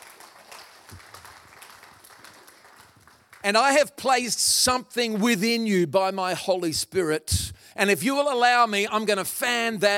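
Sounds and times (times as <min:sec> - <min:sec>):
audience applause: 0:00.0 - 0:03.4
speech: 0:03.4 - 0:09.9.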